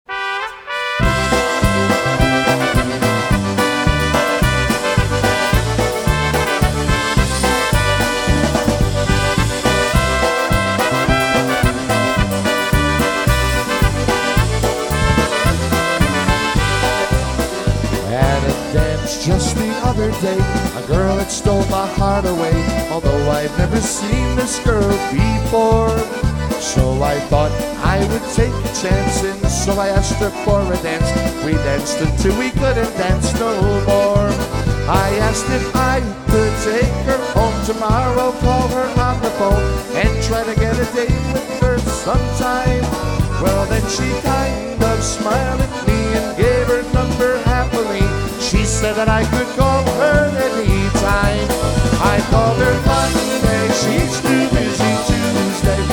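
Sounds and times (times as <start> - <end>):
live polka jam: 0.0 - 55.9.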